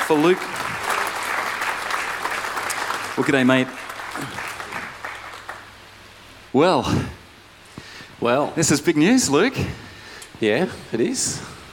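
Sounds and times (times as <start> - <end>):
audience applause: 0.0 - 5.8
speech: 0.1 - 0.6, 3.2 - 4.5, 6.5 - 7.2, 8.2 - 9.8, 10.4 - 11.6.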